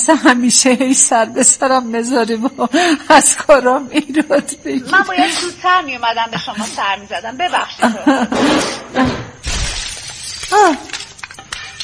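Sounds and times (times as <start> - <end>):
speech: 0.0 - 9.2
flower pot in a yard falling and shattering: 9.4 - 11.8.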